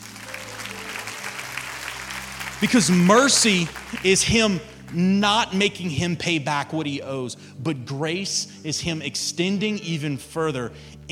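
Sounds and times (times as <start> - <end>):
audience clapping: 0.0 - 5.6
speech: 2.6 - 11.1.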